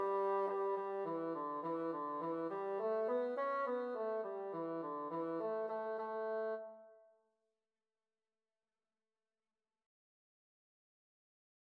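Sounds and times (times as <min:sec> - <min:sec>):
bassoon playing a lively jig: 0:00.0 - 0:06.7.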